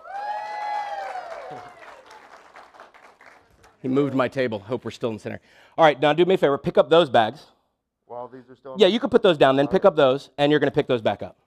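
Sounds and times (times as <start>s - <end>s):
audience applause: 0.0s - 3.8s
speech: 1.5s - 1.8s, 3.8s - 7.5s, 8.3s - 11.4s.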